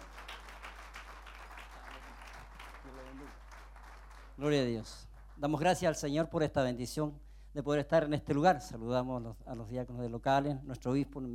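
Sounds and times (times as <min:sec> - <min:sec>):
audience applause: 0:00.0 - 0:05.3
speech: 0:03.1 - 0:03.4, 0:04.4 - 0:11.3.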